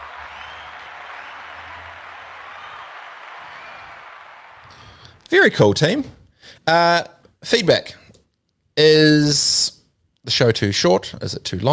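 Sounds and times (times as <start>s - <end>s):
clapping applause: 0.0s - 5.2s
speech: 4.7s - 8.0s, 8.8s - 11.7s.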